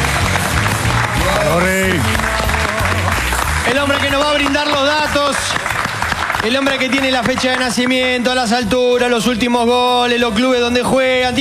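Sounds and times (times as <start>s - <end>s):
audience applause: 0.0s - 8.7s
speech: 3.8s - 5.7s, 6.4s - 11.3s.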